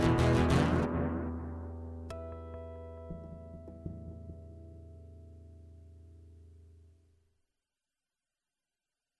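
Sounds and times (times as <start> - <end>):
guitar loop: 0.0 - 6.9.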